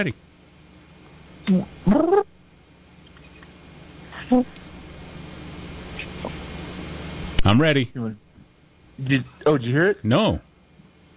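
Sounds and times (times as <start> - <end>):
speech: 0.0 - 0.3, 1.5 - 2.3, 4.3 - 4.6, 7.4 - 8.2, 9.0 - 10.5
person imitating a platypus call: 1.5 - 2.3.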